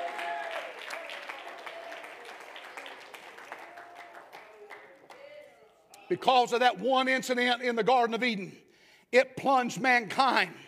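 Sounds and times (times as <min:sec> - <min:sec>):
audience clapping: 0:00.0 - 0:05.4
speech: 0:06.1 - 0:10.6.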